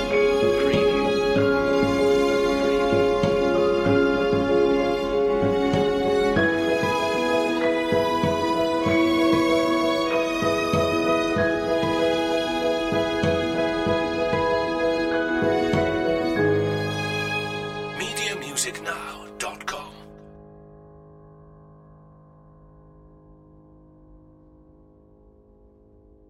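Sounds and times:
violin: 0.0s - 19.0s.

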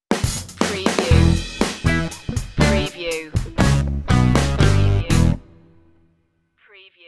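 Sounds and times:
funky strut stinger: 1.1s - 5.4s.

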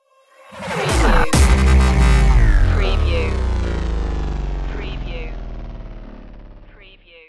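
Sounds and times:
destroyed stinger: 0.7s - 6.9s.

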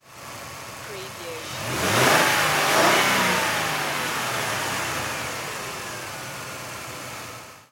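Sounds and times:
Mercury Sable engine high double rev: 1.2s - 7.3s.

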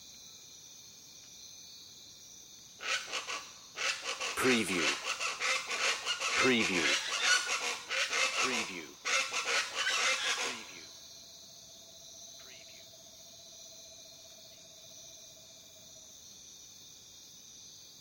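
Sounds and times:
steady high insect hum: 0.0s - 17.9s
jungle birds giving harsh squawks: 2.8s - 10.8s
speech: 4.4s - 5.1s, 6.4s - 7.0s.

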